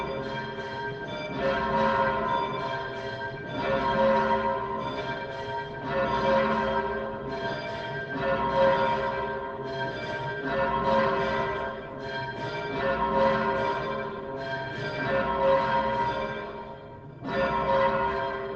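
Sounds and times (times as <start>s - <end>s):
church bells of the Iglesia de la Encarnacion pealing: 0.0s - 18.5s.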